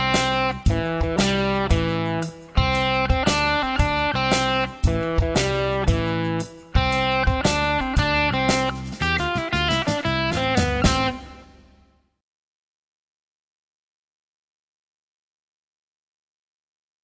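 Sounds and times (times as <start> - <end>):
rock and blues guitar solos: 0.0 - 11.9
rock playback: 0.0 - 11.9.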